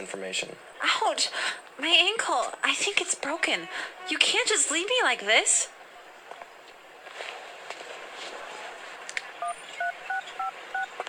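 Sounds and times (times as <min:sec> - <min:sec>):
speech: 0:00.0 - 0:05.8
steady noise: 0:00.0 - 0:11.0
phone keypad tones as a number is dialed: 0:09.4 - 0:11.0.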